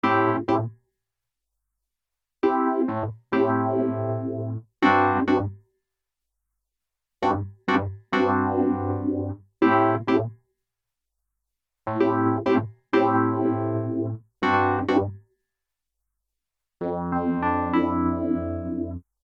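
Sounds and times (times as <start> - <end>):
dry Wurly electric piano: 2.4 - 5.5, 7.2 - 10.3, 11.9 - 15.1, 16.8 - 19.0.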